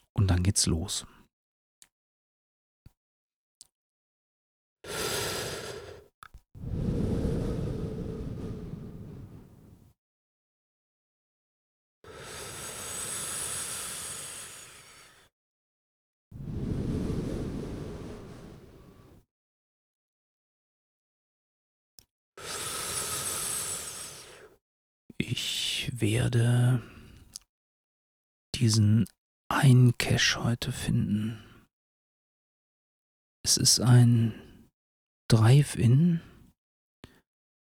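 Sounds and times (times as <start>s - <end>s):
speech: 0.4s - 1.2s, 26.0s - 27.0s, 28.6s - 31.5s, 33.4s - 34.5s, 35.3s - 36.3s
deliberate test breathing: 4.9s - 9.9s, 12.1s - 15.3s, 16.4s - 19.2s.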